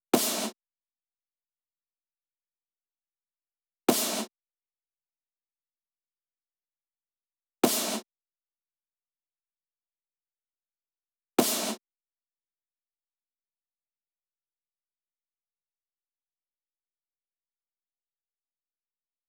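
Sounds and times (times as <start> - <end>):
snare drum hits: 3.9 - 4.3, 7.6 - 8.1, 11.4 - 11.8.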